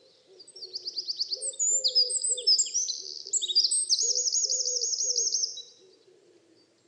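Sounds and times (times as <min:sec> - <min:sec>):
Eurasian wren Troglodytes troglodytes singing: 0:00.5 - 0:05.8.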